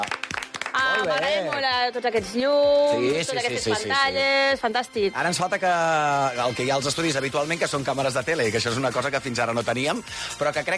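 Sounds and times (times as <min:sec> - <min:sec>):
studio audience applause: 0:00.0 - 0:02.0
speech: 0:01.0 - 0:10.7.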